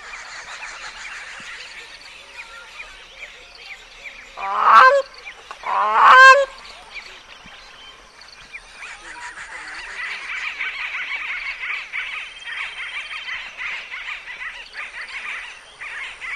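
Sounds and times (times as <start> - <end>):
other birds twittering and chirping: 0.0 - 16.3
bird giving harsh honk: 4.4 - 6.6.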